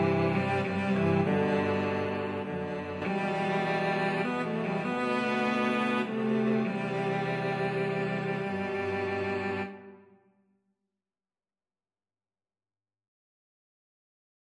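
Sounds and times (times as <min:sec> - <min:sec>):
cello trio playing a hymn: 0:00.0 - 0:09.9.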